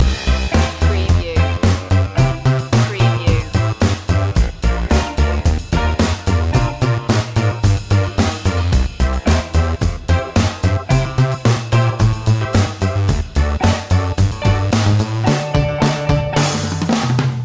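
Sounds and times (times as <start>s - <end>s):
silly funny music loop: 0.0s - 17.0s.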